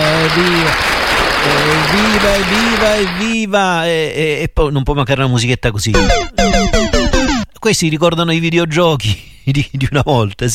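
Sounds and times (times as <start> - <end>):
applause sound effect: 0.0 - 3.3
speech: 0.3 - 6.8, 7.6 - 10.5.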